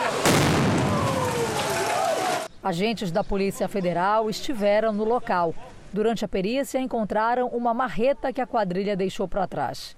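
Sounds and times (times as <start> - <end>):
explosion of bank robbers' explosives: 0.2 - 1.9
speech: 2.6 - 9.9.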